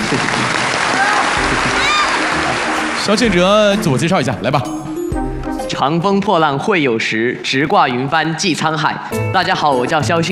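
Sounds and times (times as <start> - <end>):
audience applause: 0.0 - 4.1
speech: 3.0 - 4.9, 5.8 - 10.3.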